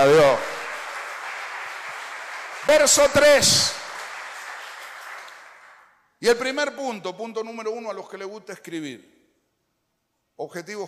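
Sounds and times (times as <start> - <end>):
speech: 0.0 - 0.5, 2.6 - 3.8, 6.2 - 9.2, 10.4 - 10.8
audience applause: 0.0 - 5.9.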